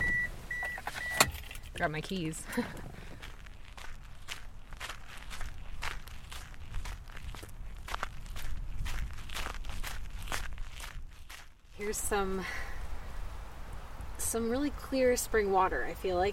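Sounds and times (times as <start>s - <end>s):
low rumble: 0.0s - 16.3s
footsteps walking outdoors: 1.6s - 12.6s
speech: 1.8s - 3.0s, 11.8s - 12.7s, 14.3s - 16.3s.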